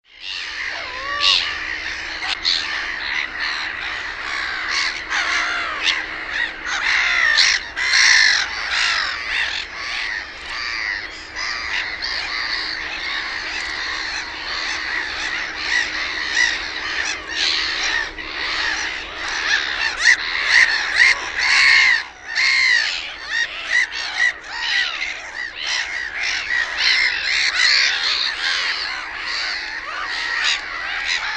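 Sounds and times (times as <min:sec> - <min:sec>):
black-headed gulls squawking: 0:00.0 - 0:31.3.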